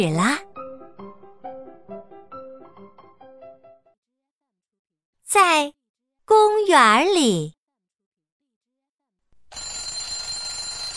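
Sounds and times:
speech: 0.0 - 0.5, 5.3 - 7.6
alarm clock ringing: 9.5 - 10.9.

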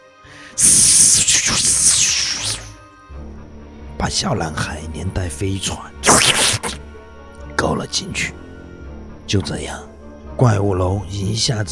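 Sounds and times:
snake tongues hissing: 0.3 - 2.8, 6.0 - 6.8
speech: 0.6 - 2.0, 4.0 - 6.6, 7.6 - 8.4, 9.3 - 11.7.

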